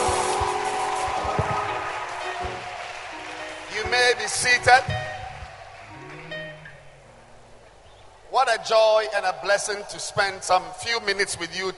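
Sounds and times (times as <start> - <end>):
audience clapping: 0.0 - 6.4
speech: 3.8 - 5.1, 8.4 - 11.7.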